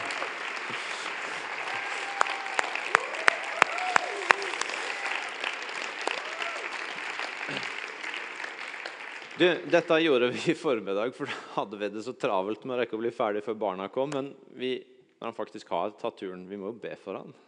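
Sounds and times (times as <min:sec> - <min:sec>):
audience applause: 0:00.0 - 0:10.6
speech: 0:09.4 - 0:17.4.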